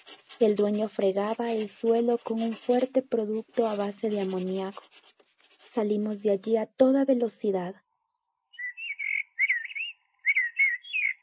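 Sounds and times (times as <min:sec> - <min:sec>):
speech: 0:00.4 - 0:05.1, 0:05.8 - 0:07.8
blackbird singing on a Mediterranean pine: 0:08.5 - 0:11.2.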